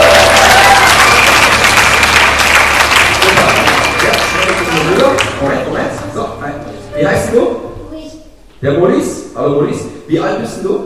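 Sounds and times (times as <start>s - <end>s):
audience applause: 0.0s - 6.0s
speech: 8.6s - 10.8s.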